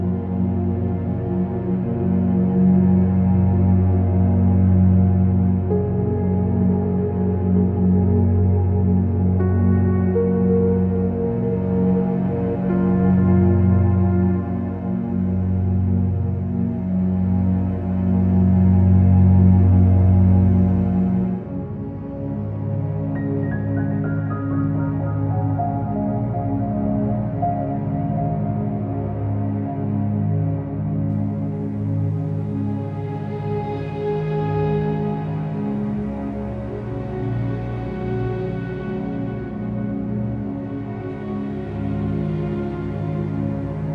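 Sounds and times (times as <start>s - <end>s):
soft standup piano playing chords: 0.0s - 43.9s.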